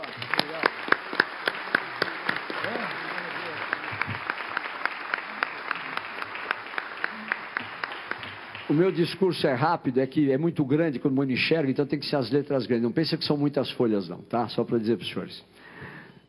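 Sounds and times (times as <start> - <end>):
audience applause: 0.0 - 9.2
speech: 8.7 - 15.5.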